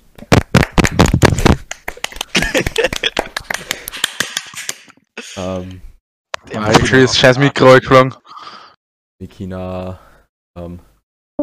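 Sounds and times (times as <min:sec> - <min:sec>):
applause: 0:00.2 - 0:04.9
laughter: 0:02.0 - 0:05.5, 0:06.6 - 0:07.8
speech: 0:05.4 - 0:05.9, 0:06.6 - 0:08.2, 0:09.2 - 0:11.4.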